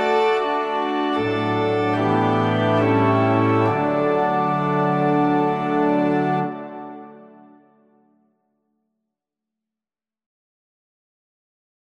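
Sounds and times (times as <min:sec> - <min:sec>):
instrumental music: 0:00.0 - 0:08.2.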